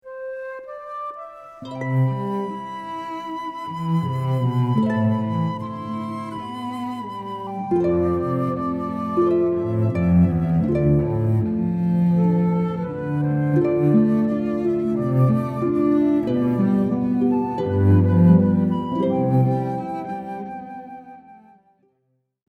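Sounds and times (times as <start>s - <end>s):
harp: 0.0s - 21.7s
flute: 0.0s - 22.0s
cello: 0.1s - 21.6s.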